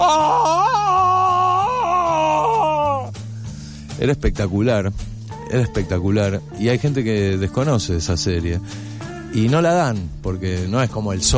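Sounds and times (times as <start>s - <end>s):
voice imitating Tarzan's jungle yell: 0.0s - 3.1s
speech: 4.0s - 11.3s.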